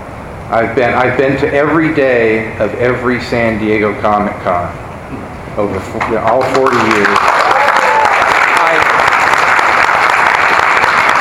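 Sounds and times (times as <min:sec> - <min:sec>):
speech: 0:00.5 - 0:07.4
audience applauding: 0:06.3 - 0:11.1.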